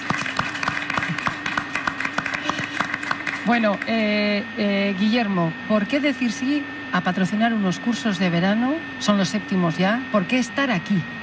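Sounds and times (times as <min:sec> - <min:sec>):
audience clapping for summer course panel guests: 0:00.0 - 0:04.0
speech: 0:03.4 - 0:11.2.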